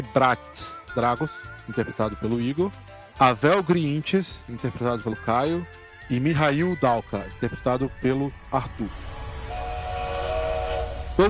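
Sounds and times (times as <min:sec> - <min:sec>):
speech: 0:00.0 - 0:09.2
high-pitched tonal whine or whistle: 0:07.7 - 0:11.2
train rolling along rails: 0:08.3 - 0:11.2.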